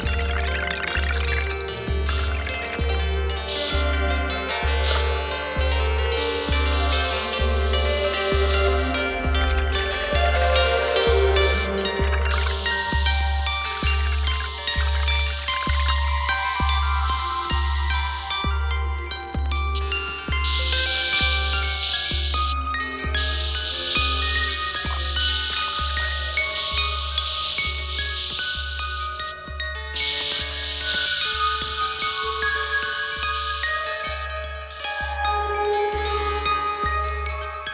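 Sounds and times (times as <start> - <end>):
string instruments noise: 0.0 - 37.7.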